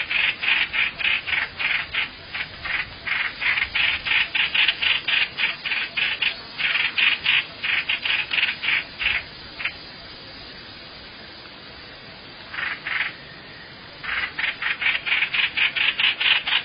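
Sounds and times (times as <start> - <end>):
bird rasping calls: 0.0 - 9.8, 12.5 - 13.2, 14.0 - 16.6.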